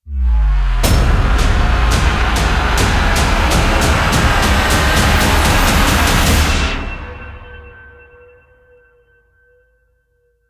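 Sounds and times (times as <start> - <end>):
near win riser sound effect: 0.0 - 8.1.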